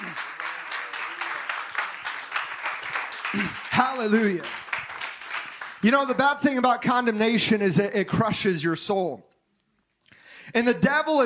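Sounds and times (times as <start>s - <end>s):
audience hand clapping: 0.0s - 6.4s
speech: 3.3s - 4.6s, 5.8s - 9.3s, 10.5s - 11.2s.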